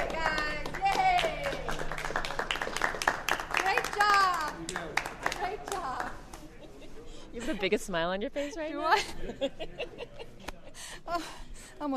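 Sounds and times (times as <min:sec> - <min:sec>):
crowd of staffers and guests applauding: 0:00.0 - 0:06.2
laughter: 0:06.3 - 0:07.7, 0:08.7 - 0:11.3
speech: 0:07.6 - 0:10.2, 0:11.1 - 0:11.9.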